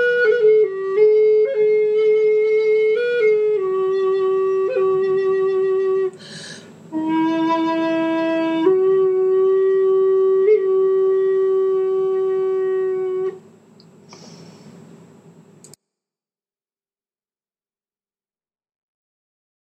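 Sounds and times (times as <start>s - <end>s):
flutes playing: 0.0s - 13.4s.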